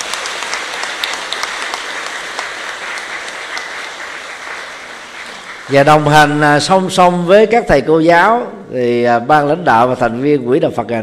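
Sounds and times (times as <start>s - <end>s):
crowd applauding: 0.0s - 6.8s
speech: 5.7s - 11.0s.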